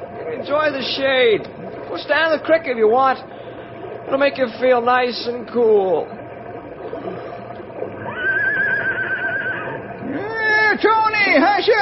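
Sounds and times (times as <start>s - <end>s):
low steady rumble: 0.0s - 11.8s
speech: 0.4s - 3.4s, 4.1s - 6.2s, 10.8s - 11.8s
horse whinnying: 8.0s - 9.9s.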